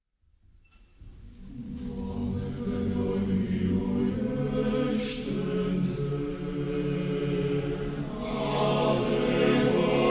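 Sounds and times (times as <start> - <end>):
choir singing a ballad: 1.5 - 10.0.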